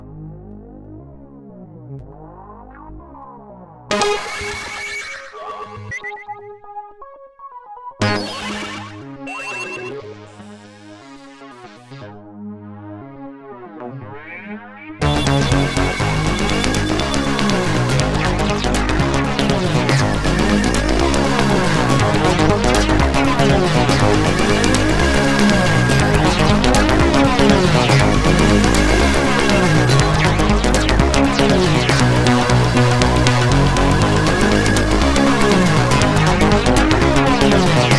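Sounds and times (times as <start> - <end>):
polypunk music: 15.0 - 37.9.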